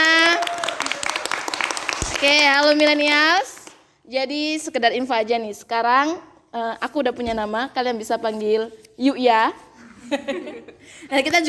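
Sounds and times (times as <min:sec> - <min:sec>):
audience applause: 0:00.2 - 0:02.4
speech: 0:02.2 - 0:11.4.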